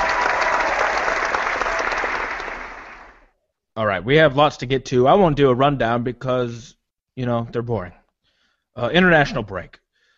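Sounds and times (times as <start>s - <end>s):
crowd cheering and applause effect: 0.0s - 3.3s
speech: 4.0s - 8.0s, 8.8s - 9.8s.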